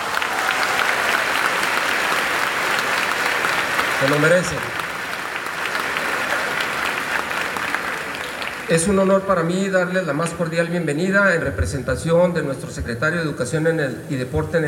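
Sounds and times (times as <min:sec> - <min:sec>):
audience applause for students: 0:00.0 - 0:09.2
speech: 0:04.0 - 0:04.8, 0:08.7 - 0:14.6.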